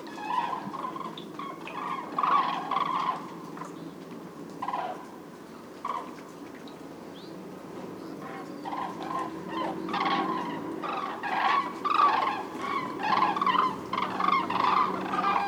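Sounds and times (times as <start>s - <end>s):
cranes calling: 0.0s - 3.9s, 4.6s - 5.2s, 5.8s - 6.2s, 8.1s - 15.4s.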